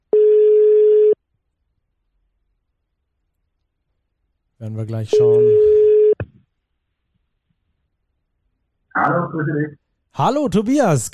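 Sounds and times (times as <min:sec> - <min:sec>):
telephone ringing tone on a call: 0:00.1 - 0:01.2, 0:05.1 - 0:06.2
speech: 0:04.6 - 0:05.8, 0:09.1 - 0:11.1.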